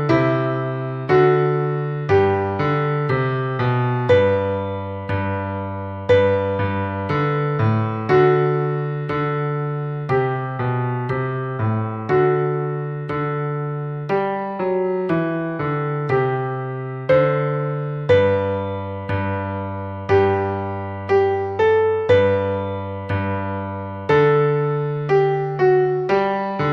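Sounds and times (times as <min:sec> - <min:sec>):
solo piano: 0:00.0 - 0:26.7.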